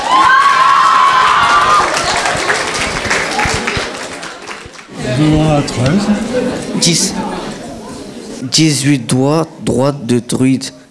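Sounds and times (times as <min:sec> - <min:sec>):
crowd applauding and cheering: 0:00.0 - 0:05.4
speech: 0:05.2 - 0:07.6, 0:08.4 - 0:10.8.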